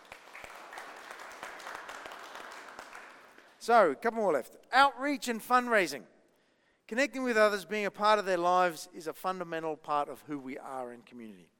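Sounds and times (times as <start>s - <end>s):
crowd applauding: 0.0s - 3.6s
speech: 3.6s - 6.1s, 6.9s - 11.5s.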